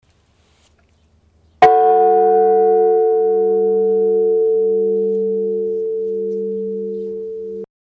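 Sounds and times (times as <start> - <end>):
bell ringing: 1.6 - 7.7.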